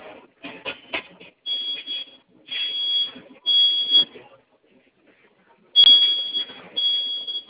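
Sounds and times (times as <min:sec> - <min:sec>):
fire alarm activated from its control panel: 0:01.5 - 0:04.1, 0:05.8 - 0:07.4.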